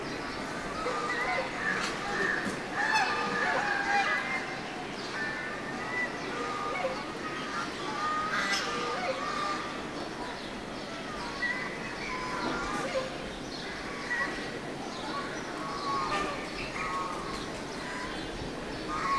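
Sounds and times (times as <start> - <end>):
birds in a city place in South India: 0.0 - 19.1.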